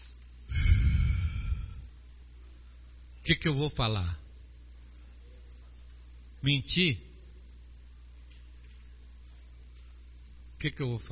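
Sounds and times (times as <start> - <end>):
deep breath: 0.5 - 2.0
speech: 3.2 - 4.2, 6.4 - 7.1, 10.6 - 11.0.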